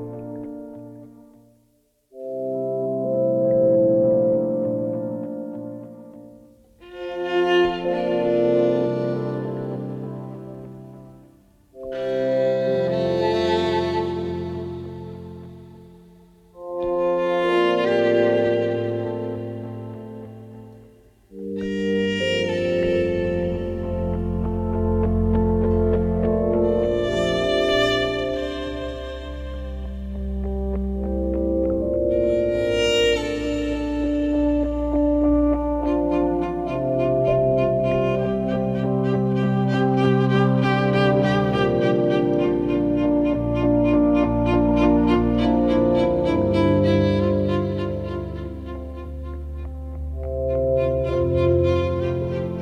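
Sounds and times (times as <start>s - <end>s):
ARP synthesizer violin: 2.1s - 52.6s.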